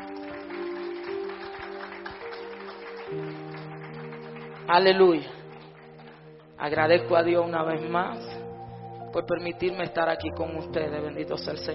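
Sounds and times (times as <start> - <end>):
audience clapping: 0.0 - 6.8
speech: 4.7 - 5.4, 6.6 - 8.4, 9.2 - 11.7.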